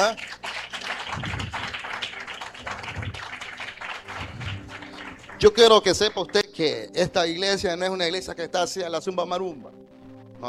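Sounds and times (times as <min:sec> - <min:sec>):
speech: 0:00.0 - 0:00.4, 0:05.4 - 0:10.4
audience applauding: 0:00.0 - 0:06.5.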